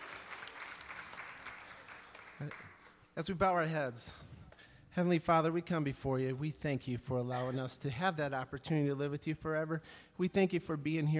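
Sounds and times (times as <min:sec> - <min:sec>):
church congregation clapping in praise: 0:00.0 - 0:03.1
speech: 0:02.4 - 0:04.3, 0:05.0 - 0:11.1.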